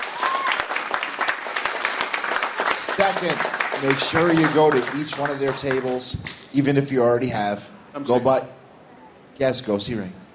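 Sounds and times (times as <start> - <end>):
audience applauding for people on a stage: 0.0 - 6.2
speech: 3.0 - 8.6, 9.4 - 10.2.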